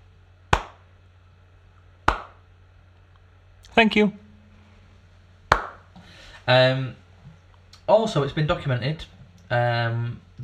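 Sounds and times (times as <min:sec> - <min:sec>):
low hum: 0:00.0 - 0:10.4
slow hand claps: 0:00.5 - 0:00.9, 0:02.0 - 0:02.4, 0:05.5 - 0:05.9
speech: 0:03.7 - 0:04.2, 0:06.4 - 0:07.0, 0:07.9 - 0:10.4.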